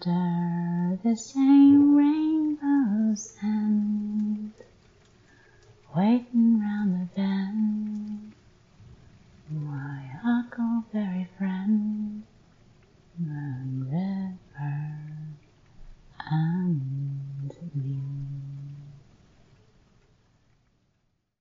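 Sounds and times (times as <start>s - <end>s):
a cappella cover singing: 0.0s - 4.7s, 5.9s - 8.4s, 9.5s - 12.3s, 13.2s - 15.4s, 16.2s - 19.0s.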